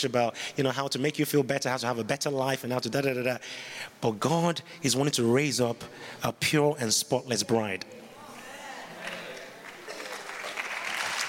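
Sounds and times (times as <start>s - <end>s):
speech: 0.0s - 8.0s
audience applause: 9.1s - 11.2s.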